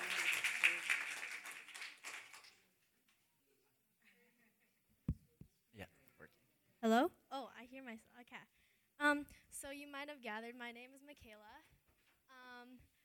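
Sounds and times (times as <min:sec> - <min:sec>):
audience applause: 0:00.0 - 0:02.6
speech: 0:06.8 - 0:11.8, 0:12.6 - 0:13.0.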